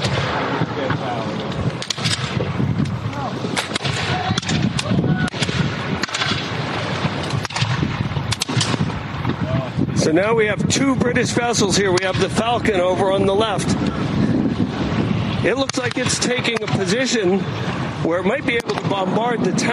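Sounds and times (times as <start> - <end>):
militia gunfire along the beach: 0.0 - 9.6, 11.6 - 13.8, 14.9 - 17.8
speech: 10.1 - 14.2, 15.4 - 19.7.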